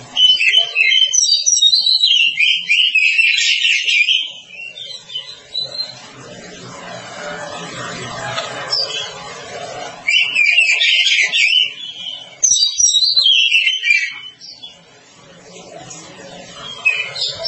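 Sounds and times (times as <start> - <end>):
oriental magpie-robin singing: 0.1 - 6.0, 10.0 - 14.8, 16.6 - 17.4.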